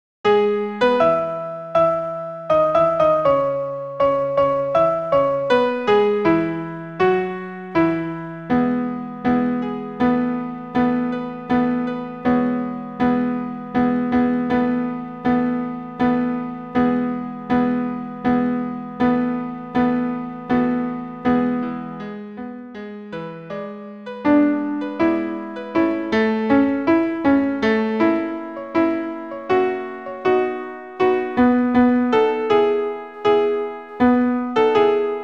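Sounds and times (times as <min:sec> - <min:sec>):
alto piano accompaniment: 0:00.2 - 0:35.2.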